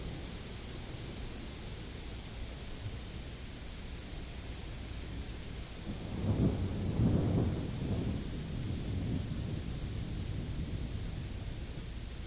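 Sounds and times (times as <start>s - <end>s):
rain at the end of an African drought: 0.0s - 12.2s
crickets chirping: 0.1s - 12.2s
distant thunder at the end of an African drought: 6.0s - 11.1s.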